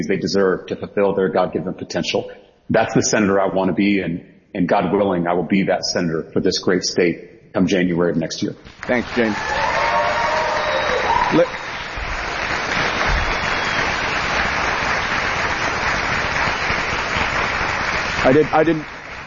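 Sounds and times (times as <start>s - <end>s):
speech: 0.0s - 9.7s, 11.3s - 11.6s, 18.2s - 19.0s
audience applause: 8.7s - 19.2s
voices and cheers: 8.8s - 14.2s.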